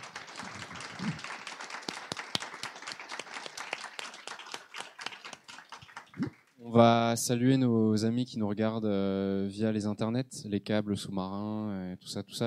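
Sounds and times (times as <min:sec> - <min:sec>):
audience applause: 0:00.0 - 0:06.5
speech: 0:06.7 - 0:12.4.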